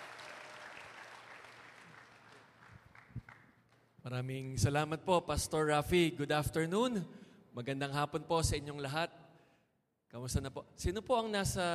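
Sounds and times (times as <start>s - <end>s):
church congregation applauding a pastor during an anniversary service: 0.0s - 3.9s
speech: 4.0s - 9.1s, 10.2s - 11.7s.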